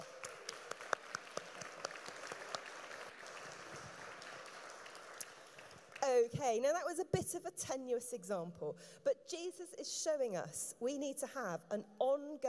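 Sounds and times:
audience clapping: 0.0 - 6.3
speech: 6.2 - 12.4.

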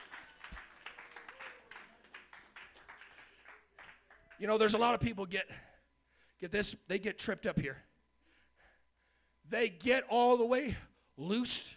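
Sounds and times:
audience clapping hands in a steady rhythm: 0.0 - 4.5
speech: 4.4 - 5.7, 6.4 - 7.9, 9.5 - 11.7.

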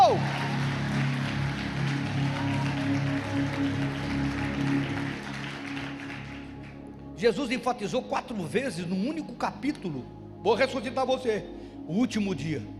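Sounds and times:
audience applauding: 0.0 - 6.9
speech: 7.2 - 12.7.

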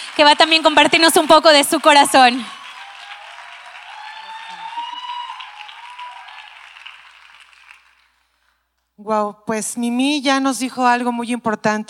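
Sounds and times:
audience applause: 0.0 - 8.2
speech: 0.2 - 2.6, 9.1 - 11.8.

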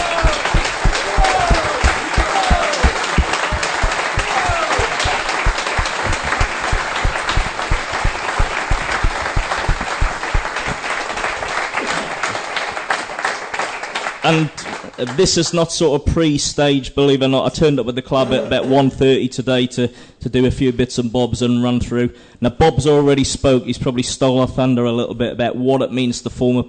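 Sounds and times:
audience applause: 0.0 - 15.2
speech: 14.3 - 26.6.

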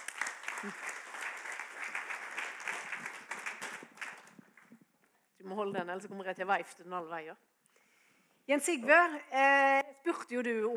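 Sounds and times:
audience applause: 0.0 - 4.6
speech: 0.6 - 0.9, 5.4 - 7.5, 8.5 - 10.7.

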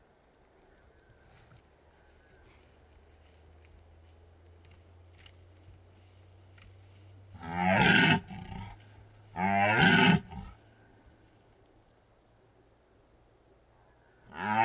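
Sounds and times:
low steady hum: 0.0 - 14.6
red deer stag roaring in rut in the Carpathian Mountains: 7.4 - 10.6, 14.2 - 14.6.

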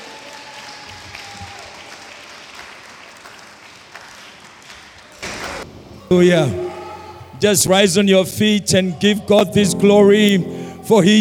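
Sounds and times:
audience clapping: 0.0 - 5.6
faint crowd voices: 5.6 - 11.1
speech: 6.1 - 6.6, 7.4 - 11.1.

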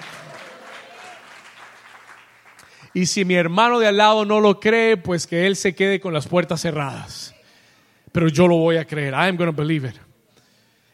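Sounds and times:
audience applause: 0.0 - 2.9
speech: 2.9 - 7.2, 8.2 - 10.1.

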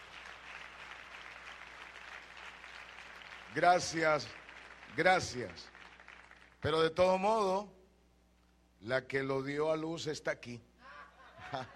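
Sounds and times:
audience applause: 0.0 - 6.6, 11.4 - 11.7
speech: 3.6 - 4.4, 5.0 - 5.7, 6.6 - 7.8, 8.8 - 10.7, 11.5 - 11.7
laughter: 10.8 - 11.7.

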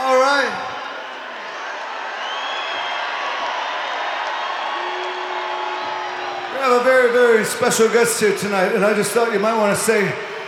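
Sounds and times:
hometown concert crowd cheering: 0.0 - 10.4
speech: 6.8 - 10.4.

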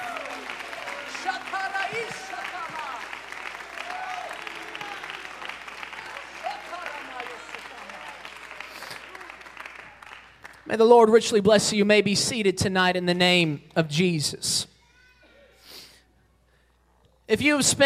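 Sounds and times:
voices shouting and cheering: 0.0 - 8.3
audience hand clapping: 0.0 - 10.9
speech: 10.7 - 14.7, 17.3 - 17.8.

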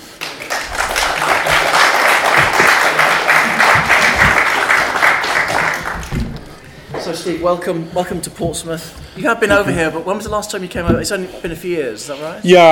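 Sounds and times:
crowd applause welcoming a guest at an event in Portsmouth: 0.0 - 6.7
speech: 7.2 - 12.6.

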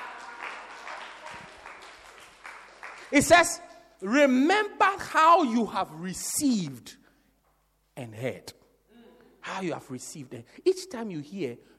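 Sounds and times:
audience applause: 0.0 - 3.2
speech: 3.1 - 7.0, 8.0 - 8.6, 9.5 - 11.7.

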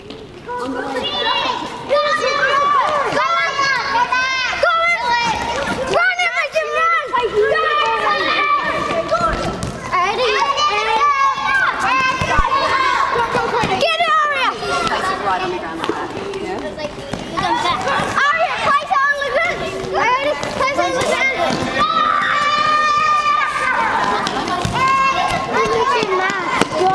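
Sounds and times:
children calling and cheering: 0.0 - 26.9
year-three children running a relay on a school court: 0.0 - 26.9.

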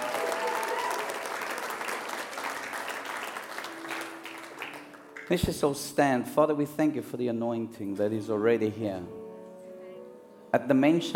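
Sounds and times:
audience hand clapping: 0.0 - 5.6
speech: 5.3 - 9.2, 10.5 - 11.1.

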